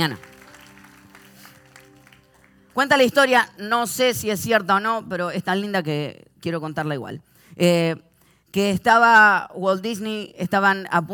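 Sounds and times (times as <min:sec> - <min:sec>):
speech: 0:00.0 - 0:00.3, 0:02.8 - 0:11.1
audience applauding: 0:00.0 - 0:03.0.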